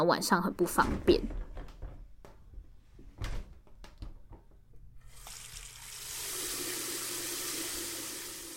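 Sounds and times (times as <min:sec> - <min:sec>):
speech: 0:00.0 - 0:01.4
bathroom door and fittings knocking and clattering: 0:00.7 - 0:04.8.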